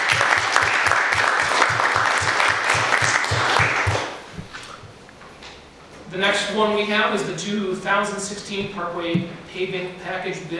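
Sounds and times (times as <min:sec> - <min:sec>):
round of applause: 0:00.0 - 0:04.2
speech: 0:06.2 - 0:10.5.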